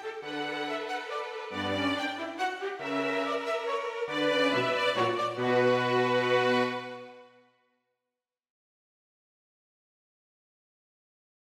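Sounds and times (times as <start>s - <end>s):
minuet for two violins and cello: 0.0s - 7.4s.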